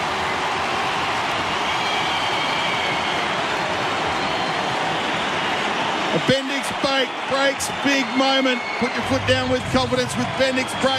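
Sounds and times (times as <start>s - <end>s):
stadium crowd roaring: 0.0s - 10.9s
speech: 6.2s - 10.9s.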